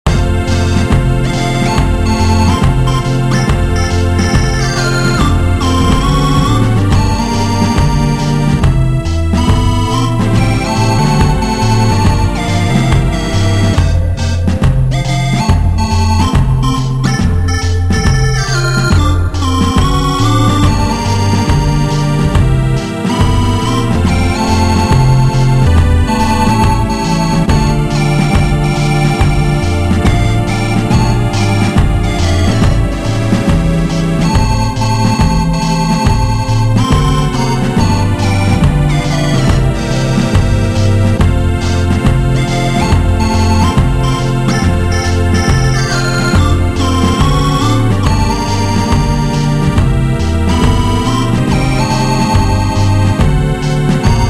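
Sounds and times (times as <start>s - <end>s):
jazz music: 0.1s - 54.2s.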